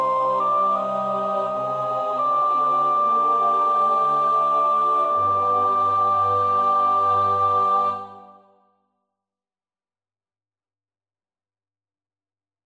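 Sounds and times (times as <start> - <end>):
soprano singing: 0.0 - 8.5.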